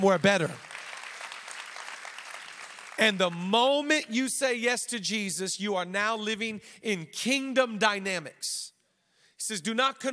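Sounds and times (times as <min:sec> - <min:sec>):
speech: 0:00.0 - 0:00.7, 0:03.0 - 0:08.7, 0:09.4 - 0:10.1
crowd audience applauding: 0:00.2 - 0:03.4.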